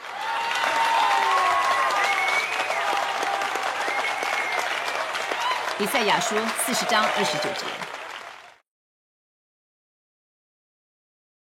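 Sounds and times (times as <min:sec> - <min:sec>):
audience cheering and whooping: 0:00.0 - 0:08.5
audience applause: 0:00.0 - 0:08.6
speech: 0:05.8 - 0:08.0.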